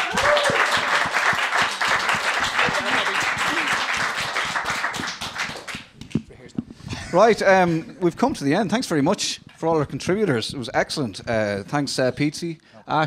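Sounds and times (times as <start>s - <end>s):
audience applause: 0.0s - 6.0s
speech: 7.1s - 13.0s.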